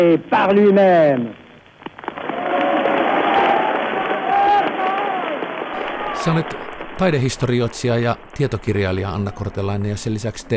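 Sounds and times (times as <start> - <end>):
speech: 0.0 - 1.4, 6.2 - 10.5
crowd cheering and applauding: 2.0 - 10.0.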